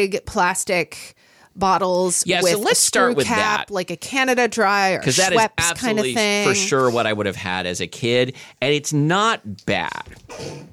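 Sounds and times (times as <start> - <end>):
speech: 0.0 - 10.7
sneeze: 10.3 - 10.7.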